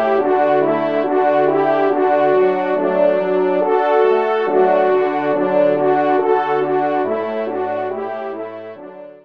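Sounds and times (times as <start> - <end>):
ensemble of three hunting horns: 0.0 - 9.2.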